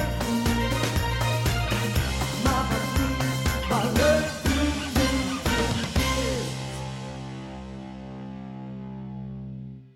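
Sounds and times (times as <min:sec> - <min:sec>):
disco karaoke music: 0:00.0 - 0:07.0.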